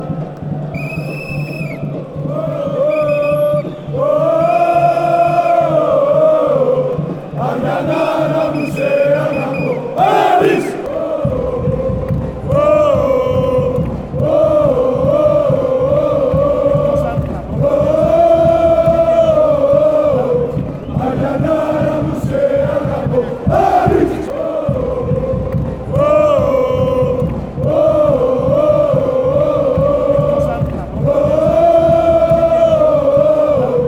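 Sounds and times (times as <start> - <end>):
chant: 0.0 - 33.8.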